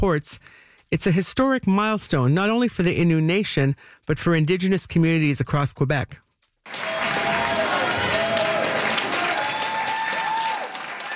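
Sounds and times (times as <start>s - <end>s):
speech: 0.0s - 6.8s
crowd cheering and applauding: 6.7s - 11.1s.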